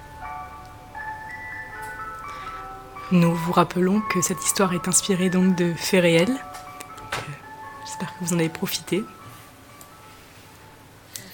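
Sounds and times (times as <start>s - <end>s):
ice cream truck jingle music: 0.0s - 11.0s
speech: 3.1s - 6.6s, 8.2s - 9.2s.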